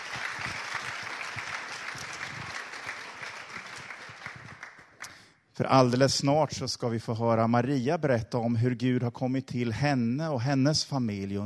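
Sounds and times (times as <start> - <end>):
audience applause: 0.0 - 5.1
speech: 5.6 - 11.4.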